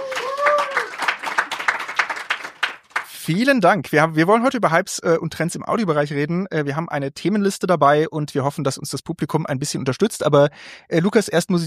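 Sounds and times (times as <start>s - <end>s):
live audience applause: 0.0s - 3.2s
speech: 3.3s - 11.6s.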